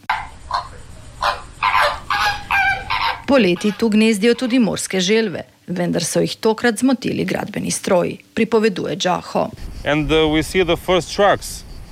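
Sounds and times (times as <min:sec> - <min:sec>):
flamingos calling at a nesting colony: 0:00.0 - 0:05.5
speech: 0:03.3 - 0:11.9.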